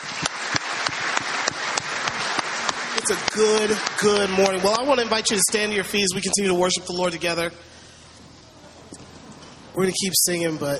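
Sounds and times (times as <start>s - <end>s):
audience applause: 0.0s - 6.1s
speech: 3.1s - 7.8s, 9.8s - 10.7s.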